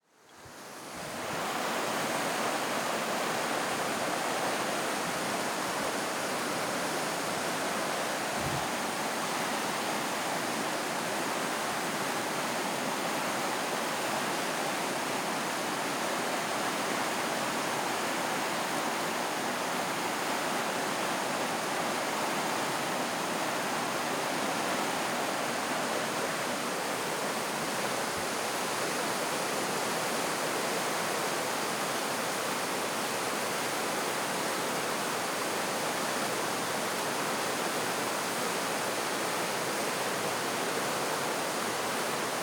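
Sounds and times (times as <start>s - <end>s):
PowWow waterfall heard from a bridge: 0.2s - 42.4s.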